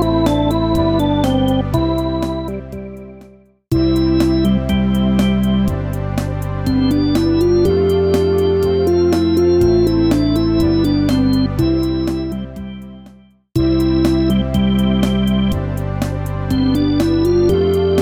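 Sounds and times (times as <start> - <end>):
Hammond organ playing: 0.0 - 15.9, 16.5 - 18.0.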